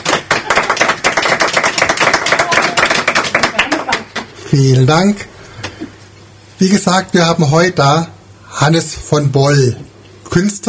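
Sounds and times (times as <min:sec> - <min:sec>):
studio audience applause: 0:00.0 - 0:04.3
speech: 0:04.5 - 0:05.3, 0:06.6 - 0:10.6.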